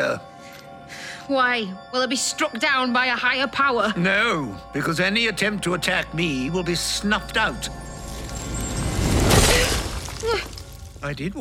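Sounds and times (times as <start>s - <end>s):
speech: 0.0s - 0.3s, 1.3s - 7.9s, 10.3s - 11.3s
crystal object shattering inside a church: 7.3s - 11.2s.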